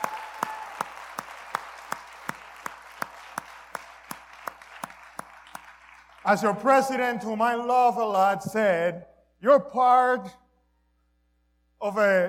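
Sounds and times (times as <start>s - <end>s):
rhythmic clapping from a church congregation: 0.0s - 6.6s
speech: 6.2s - 10.4s, 11.8s - 12.2s.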